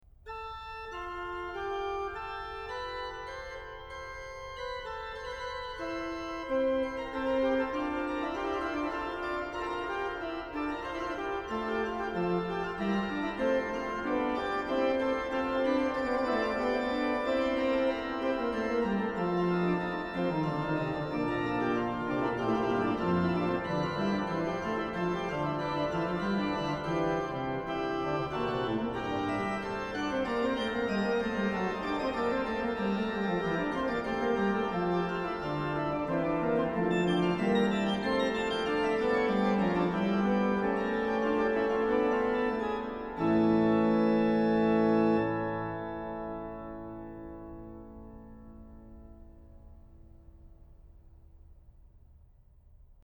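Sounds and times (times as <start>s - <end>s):
organ fughetta: 0.3s - 50.8s.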